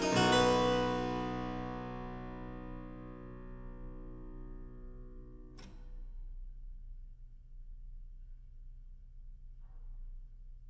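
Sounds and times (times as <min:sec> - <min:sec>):
harpsichord invention: 0:00.0 - 0:05.4.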